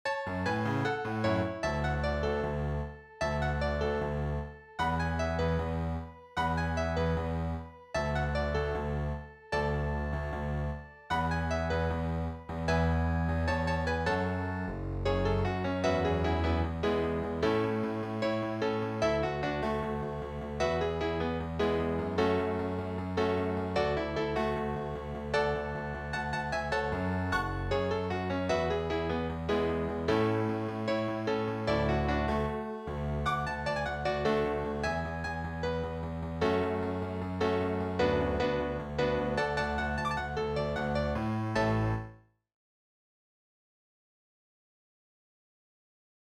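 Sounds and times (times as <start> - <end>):
musical accompaniment: 0.1 - 42.0.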